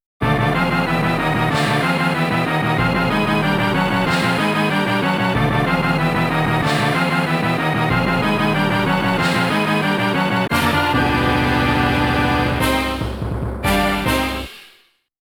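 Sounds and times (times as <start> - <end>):
continue game over music: 0.2 - 14.5.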